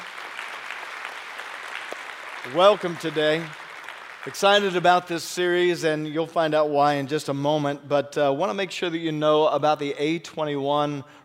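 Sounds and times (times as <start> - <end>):
audience hand clapping: 0.0 - 5.8
speech: 2.4 - 3.6, 4.2 - 11.2.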